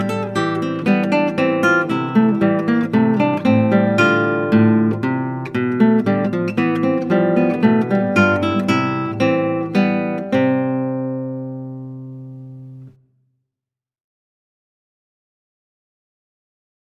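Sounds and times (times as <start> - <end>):
classical guitar: 0.0 - 13.2.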